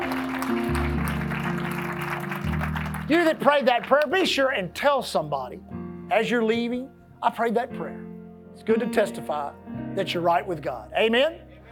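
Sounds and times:
church audience clapping hands: 0.0s - 4.3s
speech: 3.1s - 11.5s.

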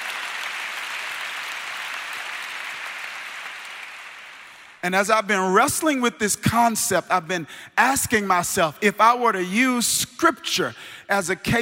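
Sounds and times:
audience hand clap applause: 0.0s - 4.8s
speech: 4.8s - 11.6s.

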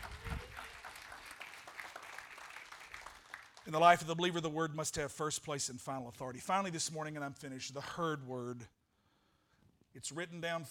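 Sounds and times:
audience clapping in praise: 0.0s - 4.1s
speech: 3.7s - 8.8s, 10.0s - 10.6s.

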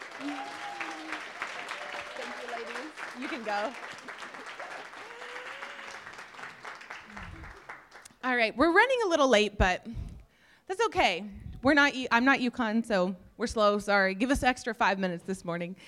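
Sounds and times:
big round of applause: 0.0s - 8.1s
speech: 3.2s - 4.1s, 8.2s - 10.0s, 10.7s - 15.8s.

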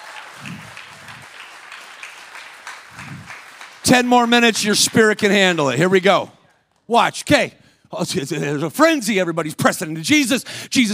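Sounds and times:
audience clapping: 0.0s - 6.9s
speech: 3.9s - 10.9s.

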